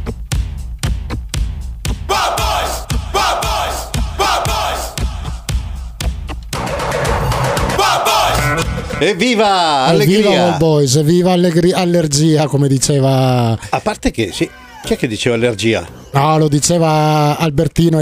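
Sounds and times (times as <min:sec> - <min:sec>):
podcast theme jingle drum beat: 0:00.0 - 0:09.0
shouting crowd-like voices: 0:02.1 - 0:05.5, 0:07.6 - 0:10.6
speech: 0:09.0 - 0:18.0.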